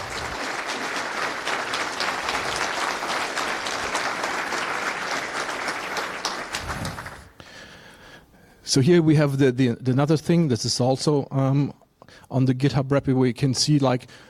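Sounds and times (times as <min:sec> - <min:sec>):
audience applause: 0:00.0 - 0:07.4
speech: 0:08.7 - 0:14.2.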